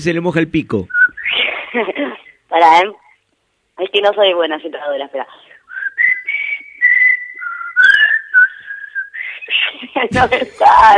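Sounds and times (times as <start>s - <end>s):
speech: 0.0s - 1.0s, 2.5s - 3.0s, 3.8s - 5.5s, 9.8s - 10.9s
person whistling a tune: 0.9s - 1.5s, 5.7s - 9.5s.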